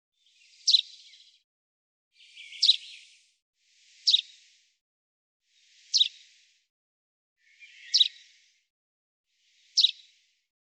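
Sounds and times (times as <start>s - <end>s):
common chaffinch calling: 0.7s - 1.1s, 2.3s - 3.0s, 5.9s - 6.2s, 7.5s - 8.2s, 9.7s - 10.0s.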